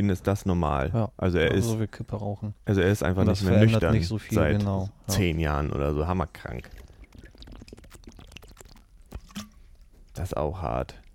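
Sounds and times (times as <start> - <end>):
speech: 0.0 - 6.8, 10.2 - 11.0
person drinking from a water bottle: 6.5 - 10.1.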